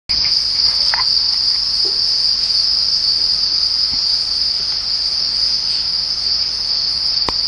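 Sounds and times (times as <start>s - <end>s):
crickets chirping: 0.1s - 7.4s.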